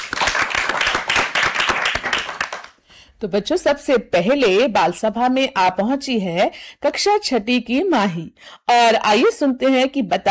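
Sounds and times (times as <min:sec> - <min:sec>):
audience clapping in welcome: 0:00.0 - 0:02.8
speech: 0:03.2 - 0:10.2.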